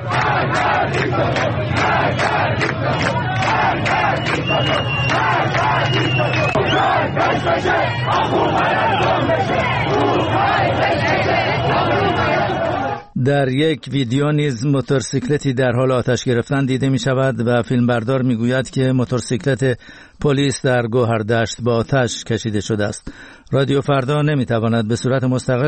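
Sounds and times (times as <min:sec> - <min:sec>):
protesters chanting slogans: 0:00.0 - 0:13.1
speech: 0:13.2 - 0:25.6.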